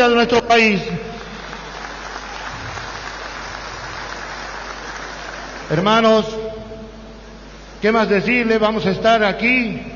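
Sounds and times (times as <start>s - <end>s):
speech: 0.0s - 1.0s, 5.7s - 6.4s, 7.8s - 9.9s
applause: 0.7s - 5.9s.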